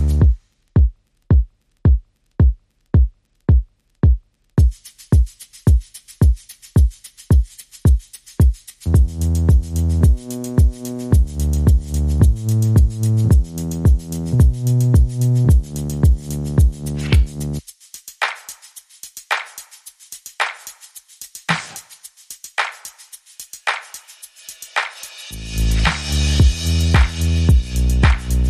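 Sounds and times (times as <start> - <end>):
bass: 0.0 - 0.4, 8.4 - 17.6, 25.3 - 28.4
drums: 0.0 - 17.4, 21.4 - 22.0, 22.6 - 28.4.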